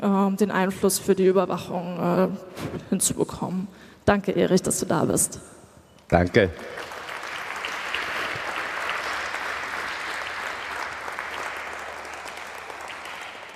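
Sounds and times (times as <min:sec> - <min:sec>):
speech: 0:00.0 - 0:06.9
audience applause: 0:06.2 - 0:13.5.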